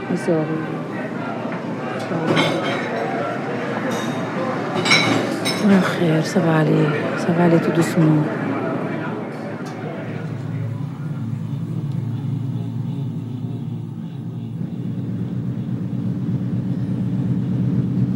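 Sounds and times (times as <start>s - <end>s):
ocean liner engine rumble: 0.0s - 18.1s
speech: 0.1s - 0.9s, 2.1s - 3.0s, 5.6s - 8.6s.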